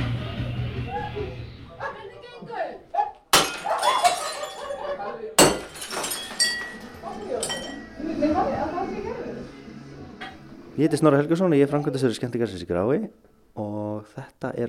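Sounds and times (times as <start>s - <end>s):
voices talking and murmuring: 0.2s - 12.7s
glass smashing: 3.3s - 7.9s
speech: 10.8s - 14.6s.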